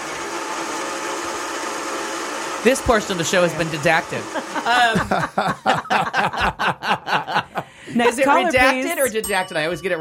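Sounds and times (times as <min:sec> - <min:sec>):
blender running: 0:00.0 - 0:05.2
speech: 0:02.6 - 0:07.0, 0:07.9 - 0:09.9
laughter: 0:03.9 - 0:09.2.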